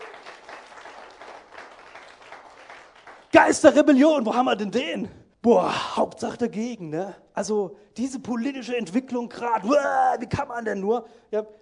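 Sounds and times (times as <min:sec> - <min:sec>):
audience clapping: 0:00.0 - 0:04.0
speech: 0:03.3 - 0:11.6.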